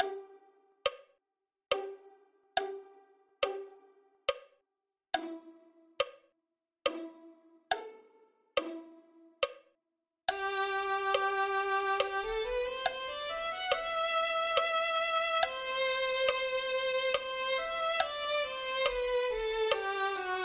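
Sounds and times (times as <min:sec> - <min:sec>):
violin: 0:00.0 - 0:00.5, 0:01.7 - 0:03.9, 0:05.2 - 0:05.6, 0:06.9 - 0:09.1, 0:10.3 - 0:20.4.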